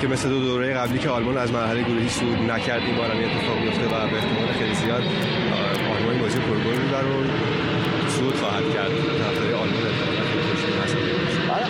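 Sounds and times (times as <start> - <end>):
speech: 0.0 - 10.1
airplanes flying overhead: 0.0 - 11.6.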